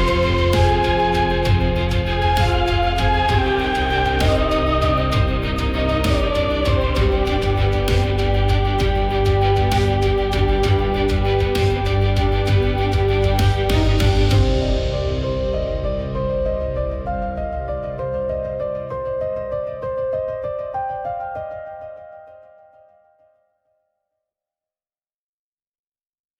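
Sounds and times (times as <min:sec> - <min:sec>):
intense emotional motivational music: 0:00.0 - 0:21.2.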